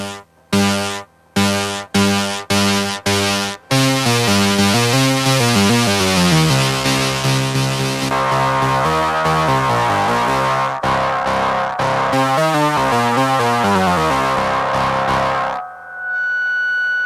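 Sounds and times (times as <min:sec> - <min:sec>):
synthesizer through Wasabi distortion pedal: 0:00.0 - 0:17.0
high-pitched feedback whine: 0:06.5 - 0:17.0.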